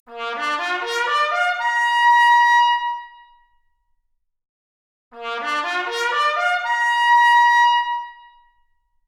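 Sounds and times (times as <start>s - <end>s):
trumpet arpeggio: 0.2s - 1.9s, 5.2s - 7.8s.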